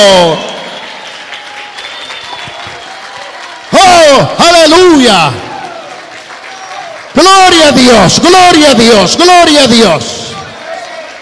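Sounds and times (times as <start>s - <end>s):
speech: 0.0s - 0.5s, 4.2s - 5.5s, 7.2s - 10.2s
audience applause: 0.0s - 11.2s
faint tonal whistling or cheering: 0.2s - 3.4s.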